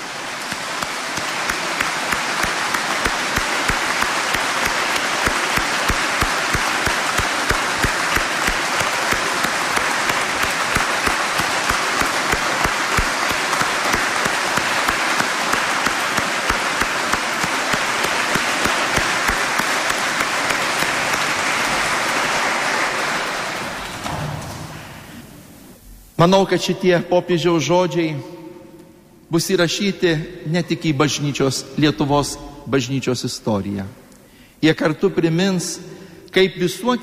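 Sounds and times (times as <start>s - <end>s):
large crowd applauding to greet the Pope: 0.0s - 25.2s
speech: 26.2s - 28.3s, 29.3s - 34.0s, 34.6s - 37.0s.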